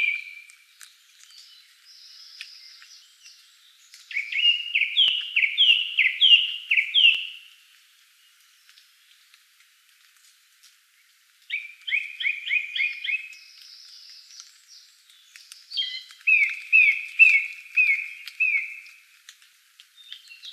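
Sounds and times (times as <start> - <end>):
song thrush singing: 0.0 - 7.6, 11.0 - 19.1, 19.9 - 20.5.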